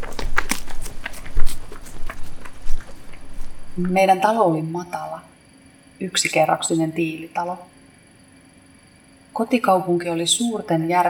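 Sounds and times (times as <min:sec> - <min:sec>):
children's footsteps running a race: 0:00.0 - 0:04.0
speech: 0:03.8 - 0:05.3, 0:06.0 - 0:07.7, 0:09.4 - 0:11.0.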